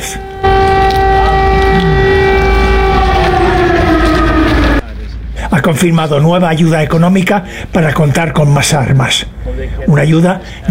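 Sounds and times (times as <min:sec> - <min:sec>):
air raid alarms wailing: 0:00.0 - 0:04.9
low rumbling noise: 0:00.0 - 0:07.8
speech: 0:05.6 - 0:10.6.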